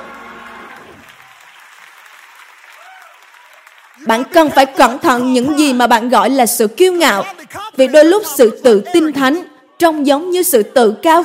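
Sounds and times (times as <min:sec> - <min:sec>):
audience applauding: 0:00.0 - 0:05.5
speech: 0:04.0 - 0:11.2.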